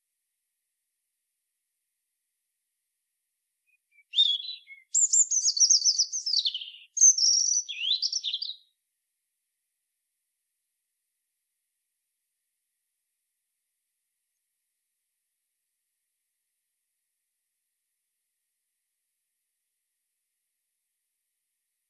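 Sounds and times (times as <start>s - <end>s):
European robin Erithacus rubecula singing: 3.7s - 8.7s.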